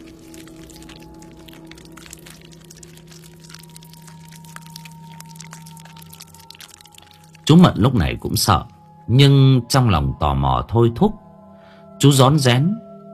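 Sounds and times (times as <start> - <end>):
wet smacking chewing of someone eating beside a window near a gate: 0.0 - 8.6
speech: 7.5 - 11.2, 12.0 - 12.8.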